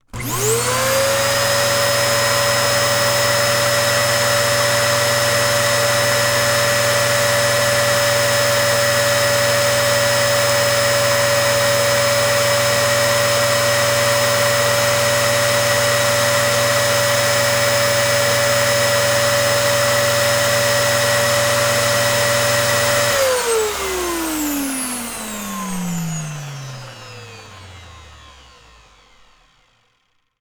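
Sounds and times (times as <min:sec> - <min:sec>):
vacuum cleaner: 0:00.0 - 0:30.3.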